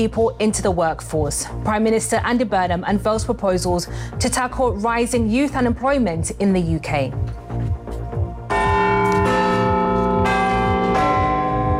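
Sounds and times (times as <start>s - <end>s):
speech: 0.0s - 7.4s
low pulsing beat: 0.0s - 11.7s
clock tower bell chiming: 8.5s - 11.7s.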